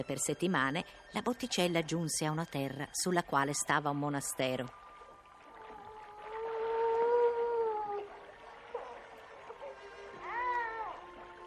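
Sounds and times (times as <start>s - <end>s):
speech: 0.0s - 4.8s
wailing lament like a crying baby: 5.6s - 8.8s, 9.6s - 11.4s.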